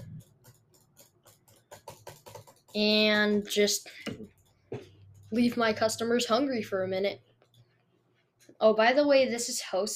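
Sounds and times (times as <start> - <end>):
rapid computer mouse clicking in a toast-making game: 0.0 - 6.5, 7.2 - 8.6
speech: 2.8 - 4.2, 5.3 - 7.3, 8.6 - 9.9.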